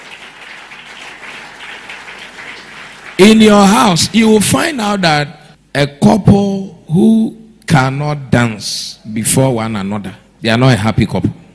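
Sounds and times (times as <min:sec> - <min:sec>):
audience applause: 0:00.0 - 0:04.3
speech: 0:03.2 - 0:11.4.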